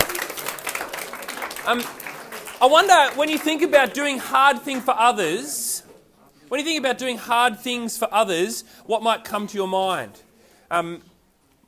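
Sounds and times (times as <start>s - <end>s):
crowd applause: 0.0s - 5.4s
speech: 1.6s - 2.0s, 2.6s - 5.6s, 6.5s - 11.1s.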